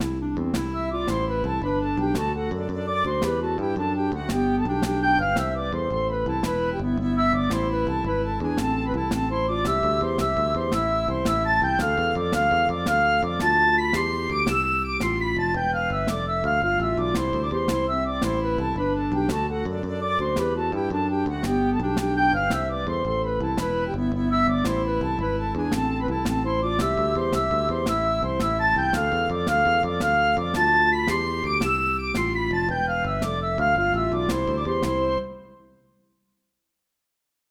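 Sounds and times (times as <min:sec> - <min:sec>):
Irish lilt dance music: 0:00.0 - 0:35.2.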